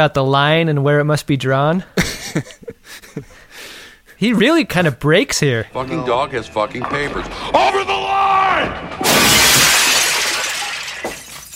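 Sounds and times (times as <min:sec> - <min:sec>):
speech: 0:00.0 - 0:03.3, 0:04.2 - 0:08.0
model ships smashed, glass shattering: 0:06.8 - 0:11.5.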